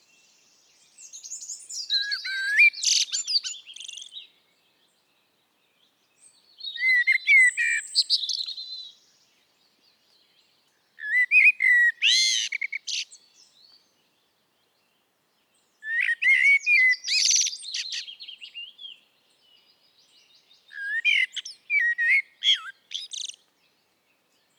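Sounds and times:
Eurasian blackbird song with fluty whistles and twitters: 1.0s - 4.4s, 6.5s - 9.0s, 11.0s - 13.6s, 15.8s - 19.0s, 20.0s - 23.4s.

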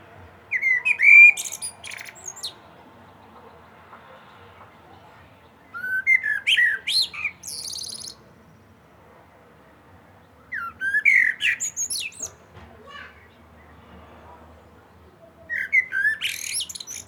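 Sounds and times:
common blackbird singing: 0.5s - 2.6s, 5.7s - 8.2s, 10.5s - 12.4s, 15.5s - 17.0s.

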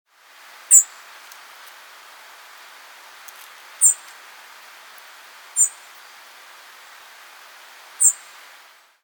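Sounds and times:
faint hiss: 0.1s - 9.0s
European robin calls: 0.7s - 1.0s, 3.8s - 4.1s, 5.6s - 5.9s, 8.0s - 8.4s.

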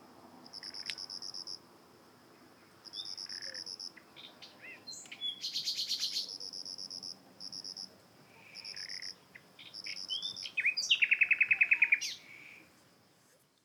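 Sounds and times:
Common nightingale singing: 2.9s - 6.7s, 8.6s - 12.7s.

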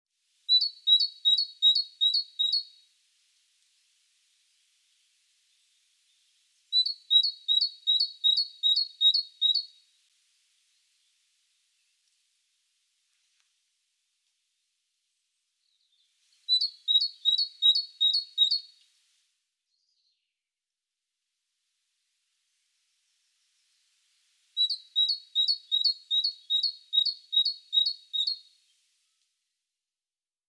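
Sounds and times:
great tit singing: 6.8s - 9.7s, 16.5s - 18.7s, 24.6s - 28.4s.

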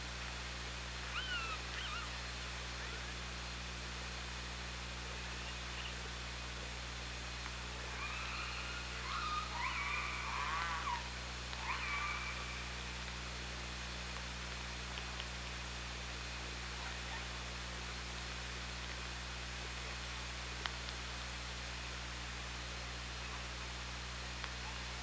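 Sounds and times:
water hiss and hum: 0.0s - 25.0s
killer whale calls: 7.9s - 12.8s.

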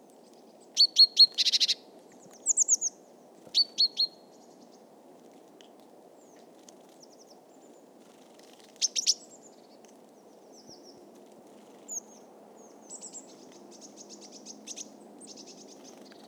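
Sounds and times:
great tit calls: 0.2s - 4.9s, 8.8s - 11.0s, 11.7s - 16.2s.

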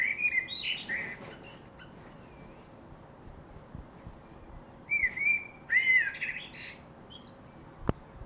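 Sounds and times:
common blackbird singing: 0.0s - 2.7s, 4.2s - 7.6s.

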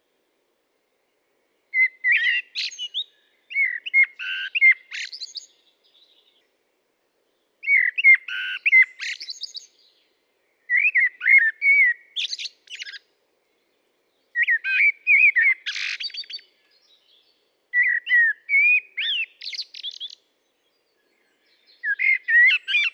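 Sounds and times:
common blackbird singing fluted warbled phrases: 1.7s - 6.4s, 7.6s - 10.1s, 10.7s - 13.0s, 14.3s - 22.9s.

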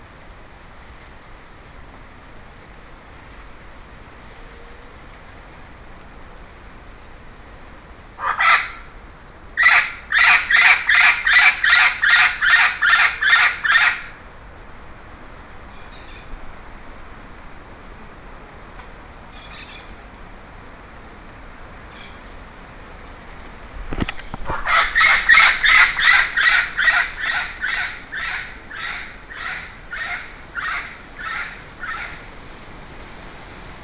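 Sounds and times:
bird harsh rasping calls: 8.2s - 8.8s, 9.6s - 14.1s, 24.3s - 32.2s.

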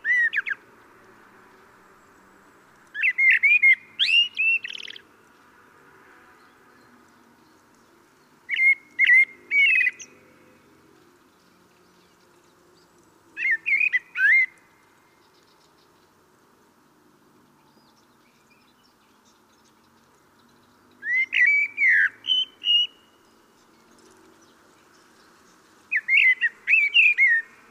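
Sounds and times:
common blackbird Turdus merula singing: 0.0s - 0.6s, 2.9s - 5.1s, 8.2s - 10.2s, 11.3s - 16.1s, 17.6s - 27.6s.

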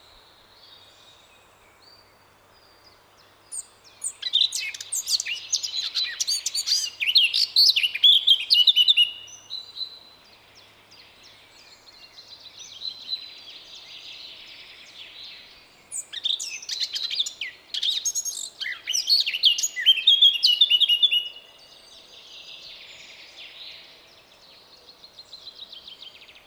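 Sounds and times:
Eurasian blackcap singing: 4.0s - 9.2s, 15.9s - 21.3s.

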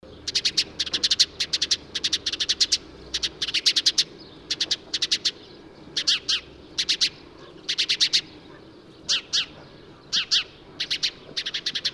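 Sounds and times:
house sparrow chirps: 0.0s - 11.9s.

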